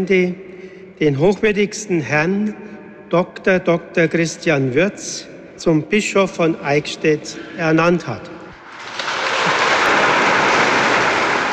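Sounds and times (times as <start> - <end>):
speech: 0.0 - 0.4, 1.0 - 8.4
large crowd applause in a cathedral: 8.9 - 11.5.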